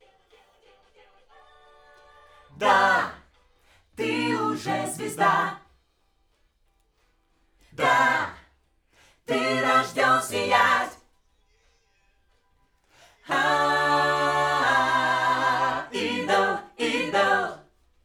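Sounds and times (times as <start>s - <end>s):
backing vocals on AKG microphone: 2.5s - 3.2s, 4.0s - 5.6s, 7.8s - 8.4s, 9.3s - 11.0s, 13.3s - 17.6s.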